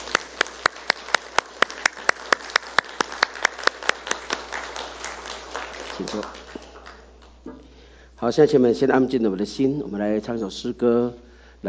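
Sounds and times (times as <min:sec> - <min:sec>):
audience applauding to welcome guests: 0:00.0 - 0:07.6
speech: 0:06.0 - 0:06.6, 0:08.2 - 0:11.6.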